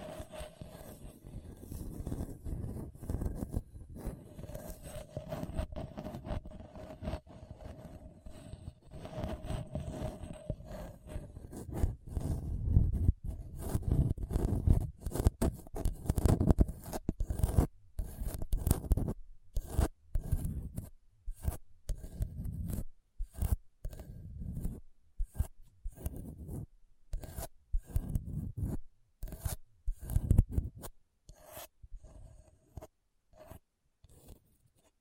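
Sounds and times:
scratching across a hard bumpy surface: 0:00.0 - 0:34.9.

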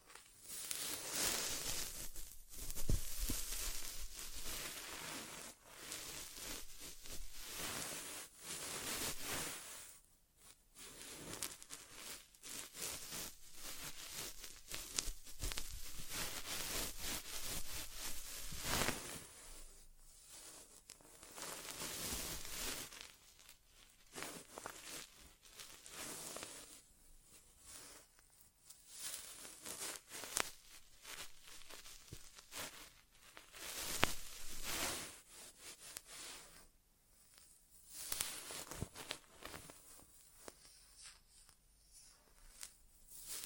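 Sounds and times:
ASMR inner ear exam scratching and rubbing: 0:00.0 - 0:09.9, 0:10.8 - 0:36.6, 0:37.2 - 0:43.4.

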